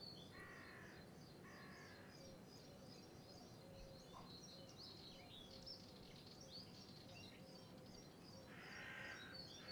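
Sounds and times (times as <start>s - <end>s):
country birds: 0.2s - 9.6s
crows: 0.3s - 2.1s, 8.5s - 9.6s.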